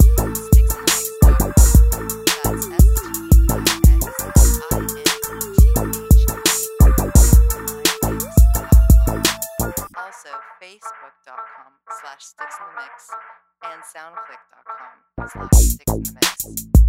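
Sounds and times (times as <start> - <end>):
bass house music: 0.0 - 10.0, 15.2 - 16.8.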